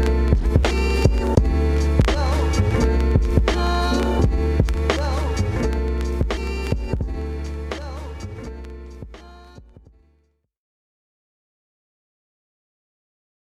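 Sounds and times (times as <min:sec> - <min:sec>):
instrumental music: 0:00.0 - 0:10.3.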